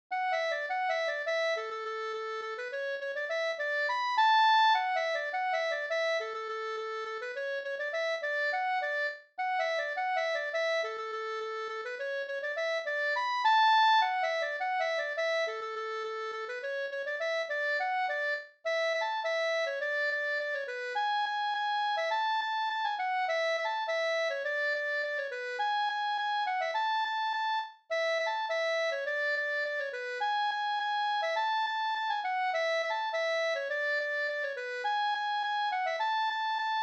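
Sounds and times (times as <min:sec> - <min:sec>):
polka music: 0:00.1 - 0:36.8.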